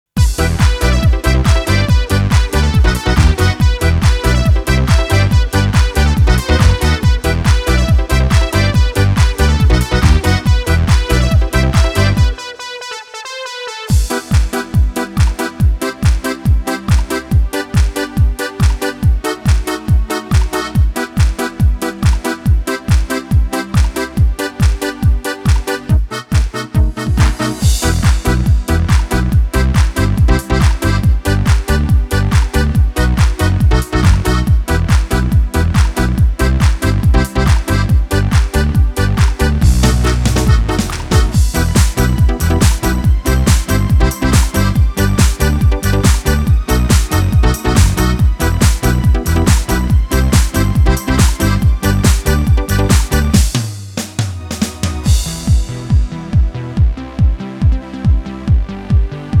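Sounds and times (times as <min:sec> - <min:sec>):
disco music: 0:00.1 - 0:59.3.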